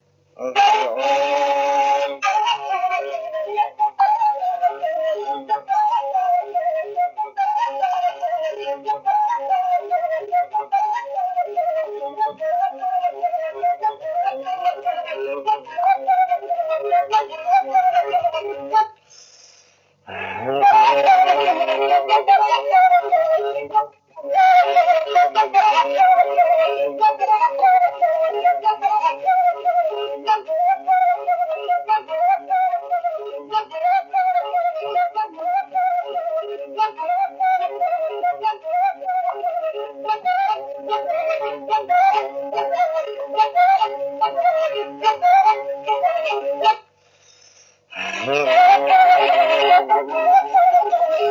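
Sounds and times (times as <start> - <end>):
fluier whistle flute playing: 0.7 - 18.8, 20.4 - 47.5, 48.1 - 51.2.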